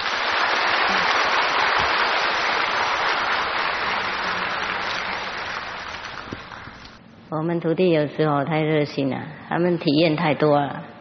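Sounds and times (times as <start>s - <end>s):
warm audience applause: 0.0s - 7.0s
speech: 7.3s - 10.9s.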